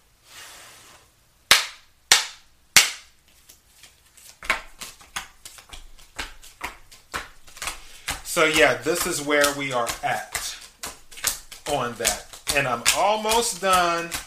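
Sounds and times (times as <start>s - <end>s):
tarot cards being shuffled: 3.3s - 14.2s
speech: 8.4s - 10.3s, 11.7s - 14.2s.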